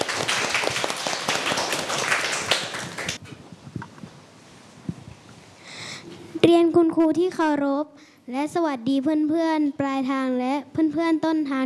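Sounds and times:
applause for a student group: 0.0s - 3.2s
speech: 6.4s - 11.6s.

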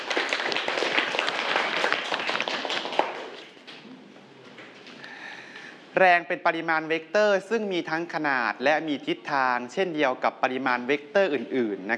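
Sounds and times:
students clapping: 0.0s - 3.8s
speech: 6.0s - 11.9s.

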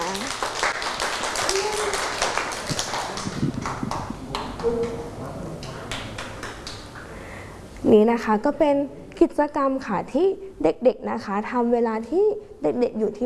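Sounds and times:
group of children clapping: 0.0s - 7.0s
speech: 7.9s - 13.2s.

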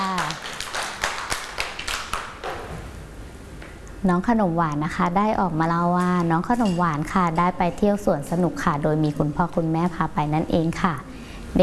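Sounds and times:
children clapping hands: 0.0s - 2.7s
speech: 4.0s - 11.6s.

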